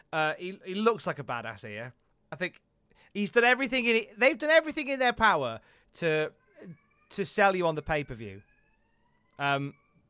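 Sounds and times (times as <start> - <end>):
speech: 0.1 - 8.5, 9.4 - 9.8
alarm test siren: 7.0 - 10.0.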